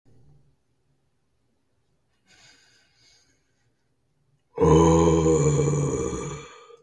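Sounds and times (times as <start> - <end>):
person making zombie noises with their voice: 4.6 - 6.8.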